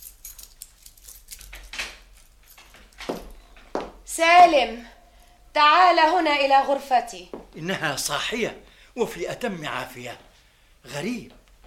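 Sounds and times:
door unlocking and opening: 0.0 - 3.7
keys jingling and scraping in a lock: 0.0 - 3.7
speech: 4.2 - 4.9, 5.6 - 11.4.

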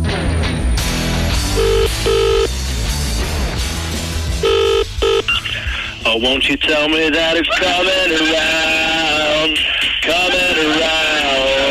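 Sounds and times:
busy loud musical backing: 0.0 - 6.1
telephone ringing with a bright electronic tone: 1.5 - 2.5, 4.4 - 5.4
speech: 6.1 - 8.8
laughter: 7.1 - 11.6.

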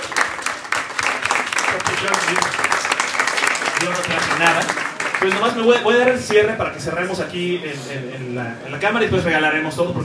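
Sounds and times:
audience applause: 0.0 - 6.5
speech: 2.0 - 2.7, 3.8 - 10.0.

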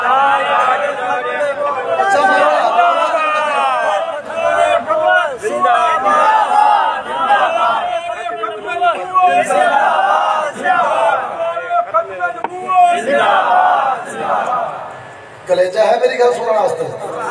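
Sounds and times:
large crowd at a religious gathering chanting a slogan: 0.0 - 15.4
speech: 15.5 - 17.0.

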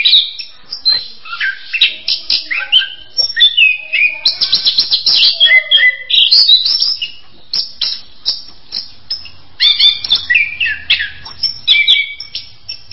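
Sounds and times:
bird chirping: 0.0 - 12.9.

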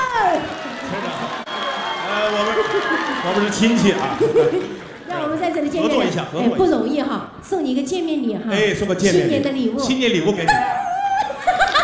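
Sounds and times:
audience applause: 0.0 - 6.3
laughter: 0.6 - 5.1, 10.5 - 11.8
speech: 2.8 - 10.8.

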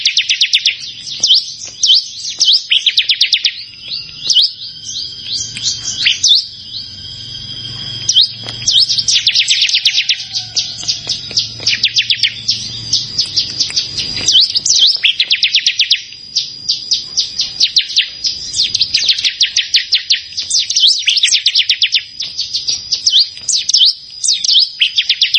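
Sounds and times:
bar-winged prinia high clipped chirps: 0.0 - 25.3.

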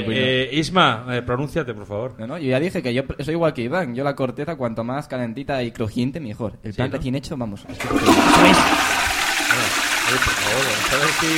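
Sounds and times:
speech: 0.0 - 9.0, 9.6 - 11.3
toilet flushing: 7.7 - 11.3.

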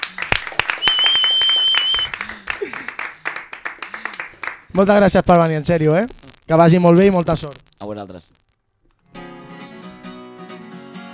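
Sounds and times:
audience applause: 0.0 - 4.8
speech: 4.8 - 8.4.

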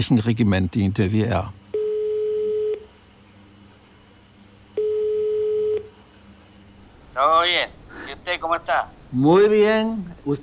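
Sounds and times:
speech: 0.0 - 1.6, 7.2 - 10.4
telephone ringing tone during a call: 1.7 - 2.9, 4.8 - 5.9.

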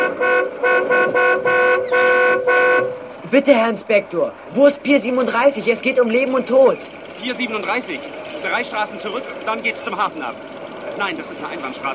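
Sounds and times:
car horn honking beside a police patrol car in the street: 0.0 - 3.2
speech: 3.3 - 11.9.

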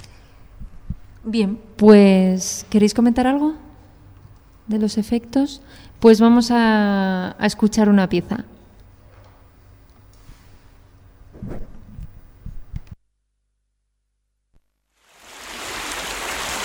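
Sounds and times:
speech: 1.2 - 3.6, 4.7 - 8.6
sea waves rushing with a low rumble: 15.2 - 16.6.

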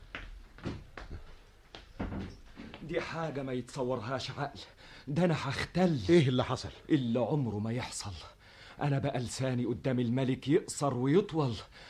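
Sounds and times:
wooden door being pulled shut: 2.0 - 2.4
speech: 2.9 - 11.8.

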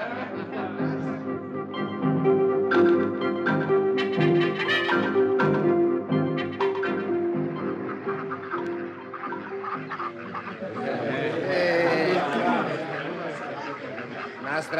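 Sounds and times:
laughter: 0.0 - 1.5, 7.9 - 14.7
ducks quacking at a village pond: 2.7 - 14.7.

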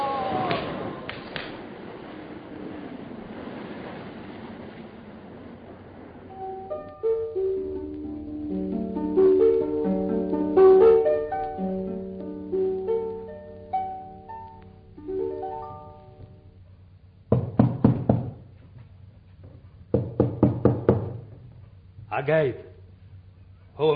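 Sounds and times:
melodic tones: 6.3 - 16.5
knocking on a door: 17.3 - 18.4, 19.9 - 21.2
speech: 22.2 - 22.6, 23.8 - 23.9.

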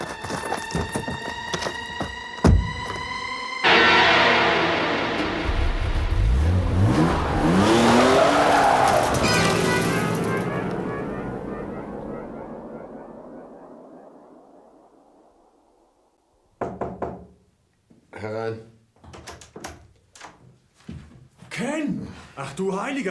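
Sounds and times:
car tires squealing while speeding away: 0.0 - 14.7
car engine roaring to life and revving hard: 2.5 - 15.2
speech: 22.6 - 23.0.

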